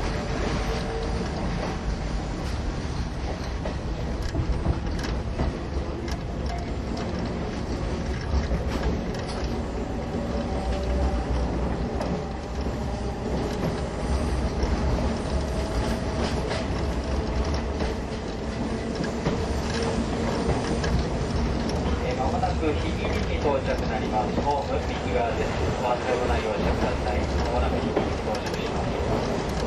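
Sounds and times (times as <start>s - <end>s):
soft rail clicks: 0.0s - 29.6s
Ōigawa Railway old-style passenger coach train hauled by E10 locomotive: 0.0s - 29.6s.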